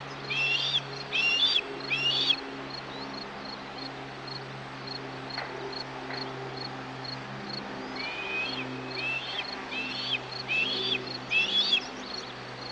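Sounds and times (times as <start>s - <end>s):
bird: 0.0s - 3.2s, 7.8s - 12.4s.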